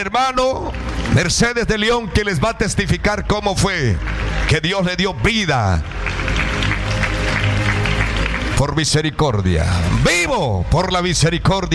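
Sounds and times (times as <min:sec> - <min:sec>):
speech: 0:00.0 - 0:06.4, 0:08.6 - 0:11.7
church congregation clapping to welcome a man giving testimony: 0:00.0 - 0:09.3.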